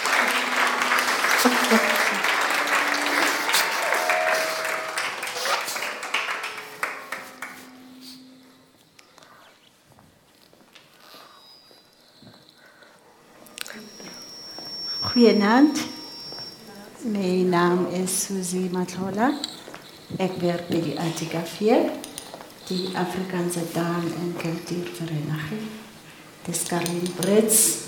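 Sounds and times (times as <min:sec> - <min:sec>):
warm audience applause: 0:00.0 - 0:08.1
speech: 0:01.4 - 0:02.0, 0:15.2 - 0:15.9, 0:17.2 - 0:19.6, 0:20.2 - 0:22.0, 0:22.7 - 0:25.8, 0:26.4 - 0:27.8.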